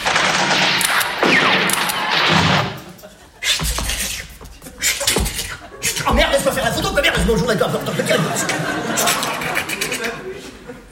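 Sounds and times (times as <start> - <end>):
gunfire from soldiers firing at will on command: 0.0 - 3.0
laughter: 2.7 - 10.9
speech: 6.7 - 9.1.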